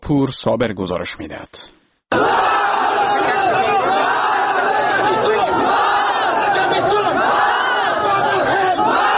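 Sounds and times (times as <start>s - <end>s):
speech: 0.1s - 2.4s
protest crowd chanting slogans: 2.1s - 9.1s.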